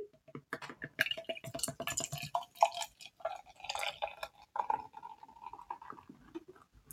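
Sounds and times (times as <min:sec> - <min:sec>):
beer splashing as poured into a glass: 0:01.0 - 0:06.3.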